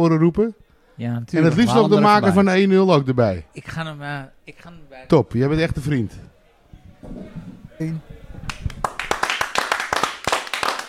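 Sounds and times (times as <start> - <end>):
speech: 0.0 - 6.3, 7.0 - 8.8
loud applause: 8.5 - 10.8.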